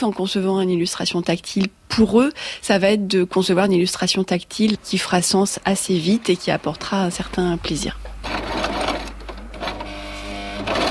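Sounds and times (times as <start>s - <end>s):
speech: 0.0s - 8.8s
sewing machine stitching figurines in a craft workshop: 8.2s - 10.9s.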